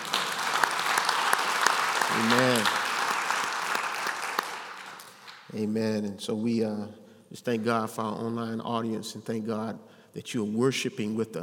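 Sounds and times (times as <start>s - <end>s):
audience hand clapping: 0.0s - 5.5s
speech: 2.1s - 2.8s, 5.5s - 11.4s.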